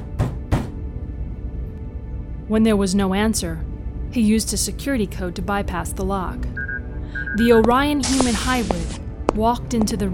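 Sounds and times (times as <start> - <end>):
banging on a door: 0.1 - 0.8
speech: 2.5 - 10.1.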